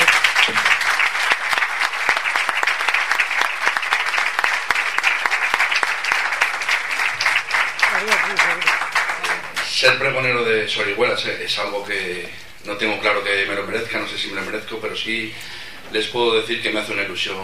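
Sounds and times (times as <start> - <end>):
audience applause: 0.0 - 10.0
speech: 9.8 - 17.4.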